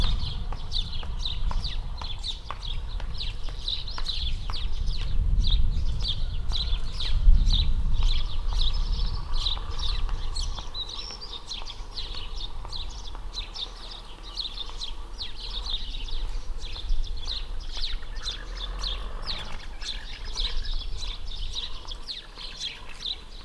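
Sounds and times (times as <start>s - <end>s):
woman's clattering footsteps: 0.0s - 7.2s, 7.8s - 18.0s
sparrows chirping on a street: 0.0s - 23.4s.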